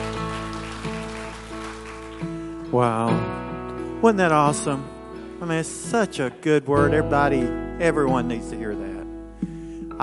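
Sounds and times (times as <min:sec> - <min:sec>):
audience applauding: 0:00.0 - 0:02.7
speech: 0:02.7 - 0:03.4, 0:04.0 - 0:09.0.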